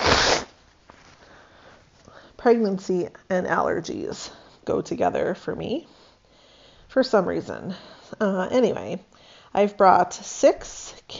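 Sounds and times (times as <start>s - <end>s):
person blowing nose: 0.0s - 0.6s
speech: 2.4s - 6.0s, 6.9s - 11.1s.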